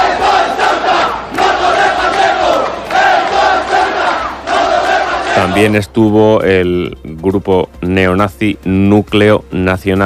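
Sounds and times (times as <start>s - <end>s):
protest crowd shouting: 0.0s - 5.7s
speech: 5.6s - 10.0s.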